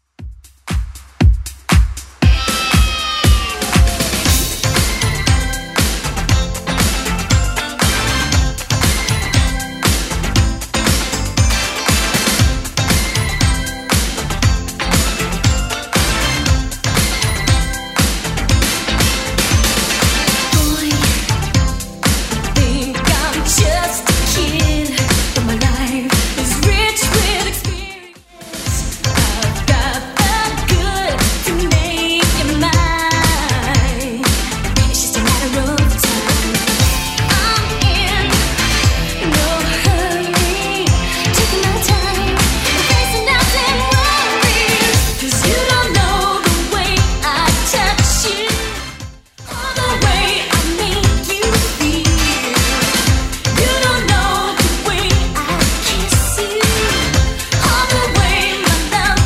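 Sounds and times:
80s club edit music at 118 BPM: 0.0 - 59.2.

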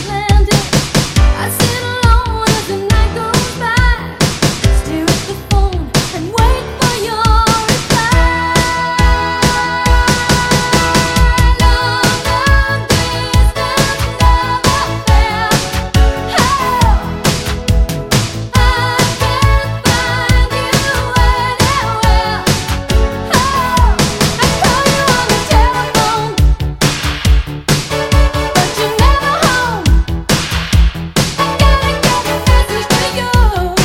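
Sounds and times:
80s pop drum beat at 138 BPM: 0.0 - 33.8.

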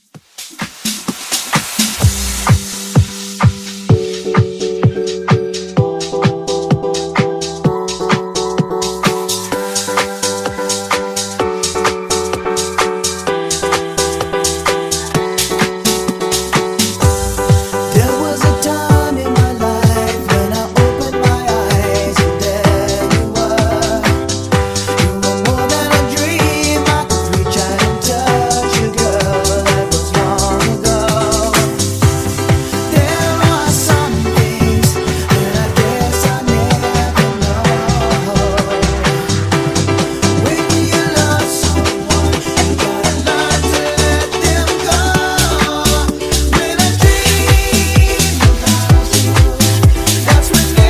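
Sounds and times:
funk bootleg music at 128 BPM: 0.0 - 50.8.

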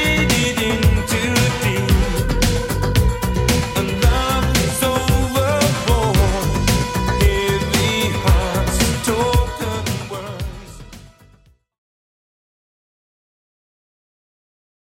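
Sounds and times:
80s style music: 0.0 - 11.5.

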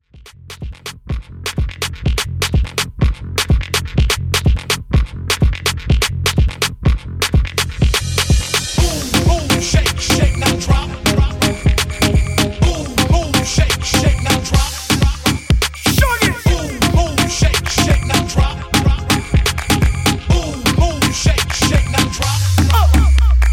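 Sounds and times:
dancehall party intro music: 0.3 - 23.5.

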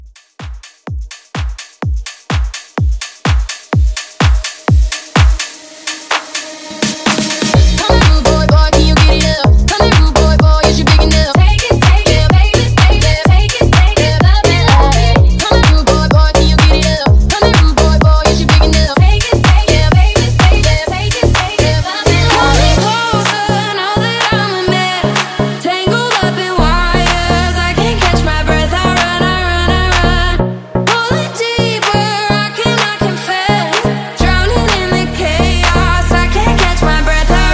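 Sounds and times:
house music mixshow at 126 BPM: 0.0 - 37.5.

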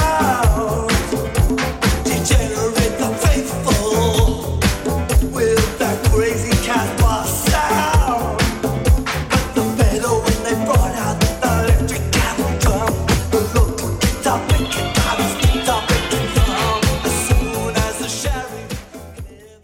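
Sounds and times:
80s rock drum beat at 128 bpm: 0.0 - 19.5.

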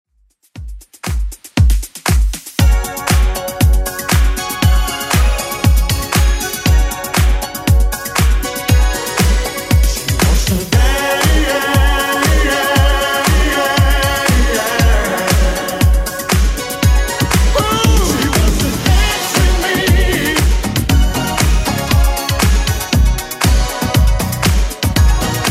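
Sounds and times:
80s club edit music at 118 BPM: 0.4 - 25.4.

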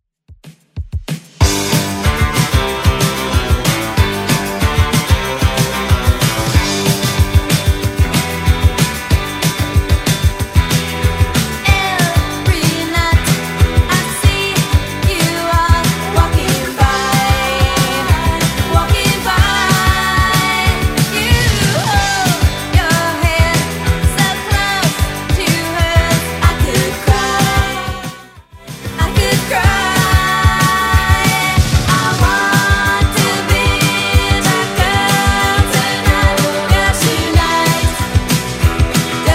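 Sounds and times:
1980s style electronic music: 1.4 - 39.3.

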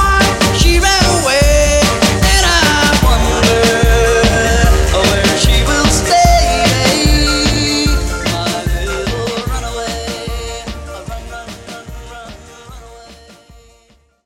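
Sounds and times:
Redrum drum machine beat: 0.0 - 12.2.

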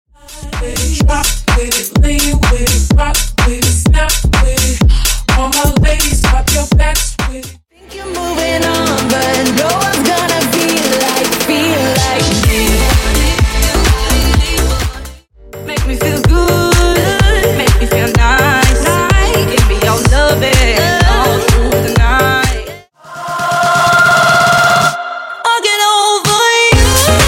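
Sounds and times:
pop club house megamix at 126 BPM: 0.2 - 27.2.

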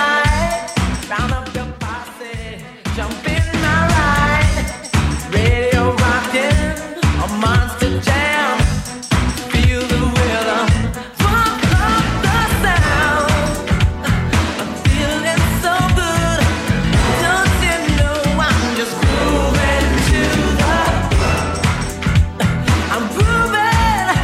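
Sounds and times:
eighties drum machine beat: 0.2 - 24.2.

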